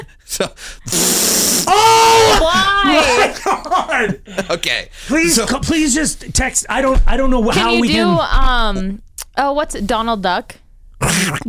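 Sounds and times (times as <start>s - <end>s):
speech: 0.0s - 11.4s
voice imitating a fart with a buzzy raspberry: 0.9s - 1.8s, 11.0s - 11.4s
laughter: 2.4s - 6.7s.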